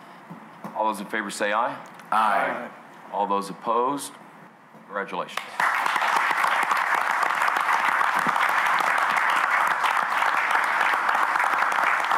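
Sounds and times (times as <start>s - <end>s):
speech: 0.8s - 4.2s, 4.9s - 5.6s
standing ovation at a Texas Tech University System board meeting: 5.4s - 12.1s.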